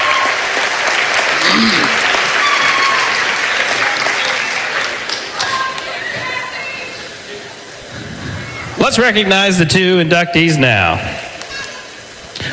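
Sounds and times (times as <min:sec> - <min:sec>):
audience applause at an athletic hall of fame induction night: 0:00.0 - 0:06.6
speech: 0:01.6 - 0:02.0, 0:08.9 - 0:11.2.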